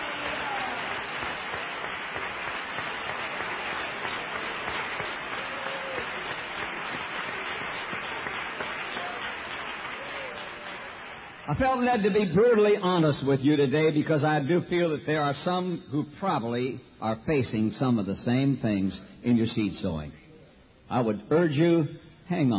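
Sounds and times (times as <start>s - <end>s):
audience clapping: 0.0s - 12.2s
speech: 11.5s - 20.2s, 20.9s - 22.5s.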